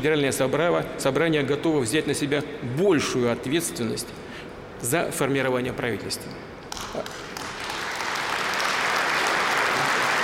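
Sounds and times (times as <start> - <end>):
speech: 0.0 - 7.3
audience applause: 7.3 - 10.2.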